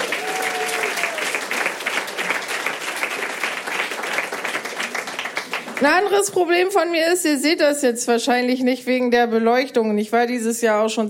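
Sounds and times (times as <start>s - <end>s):
faint cheer or whistle: 0.0s - 1.4s
audience clapping: 0.0s - 6.4s
speech: 5.8s - 11.0s.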